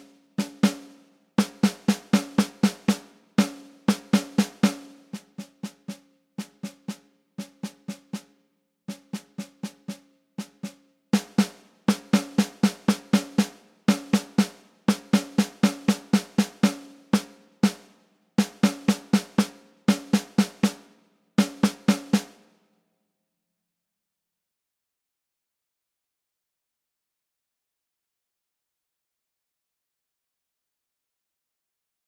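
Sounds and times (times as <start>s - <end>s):
snare drum at 120 bpm: 0.0s - 22.6s.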